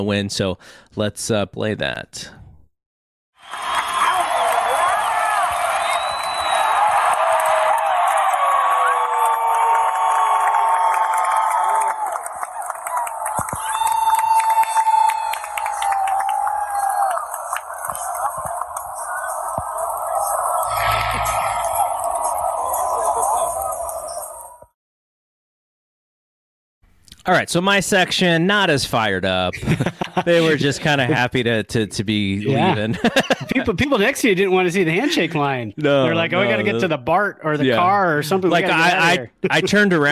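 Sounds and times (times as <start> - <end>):
speech: 0.0 - 2.4, 27.3 - 40.1
baseball crowd cheering final pitch: 3.4 - 24.8
laughter: 29.5 - 31.3, 32.5 - 33.8.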